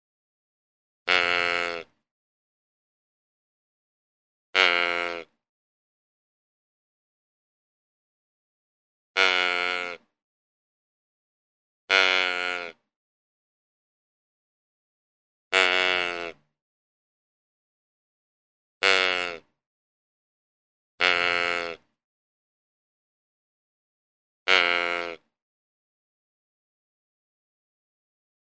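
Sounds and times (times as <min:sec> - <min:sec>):
deer giving nasal bleats: 0:01.1 - 0:02.0, 0:04.6 - 0:05.4, 0:09.2 - 0:10.1, 0:11.9 - 0:12.8, 0:15.5 - 0:16.4, 0:18.8 - 0:19.5, 0:21.0 - 0:21.9, 0:24.5 - 0:25.3.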